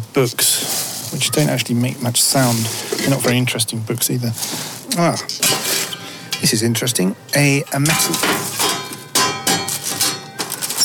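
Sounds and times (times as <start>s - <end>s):
speech: 0.2s - 5.8s, 6.4s - 8.6s
metal dish struck: 5.2s - 6.9s, 7.6s - 10.8s.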